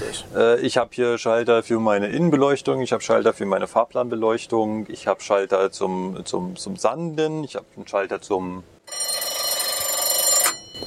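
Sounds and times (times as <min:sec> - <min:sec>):
speech: 0:00.1 - 0:09.2
locomotive bell ringing: 0:08.9 - 0:10.8.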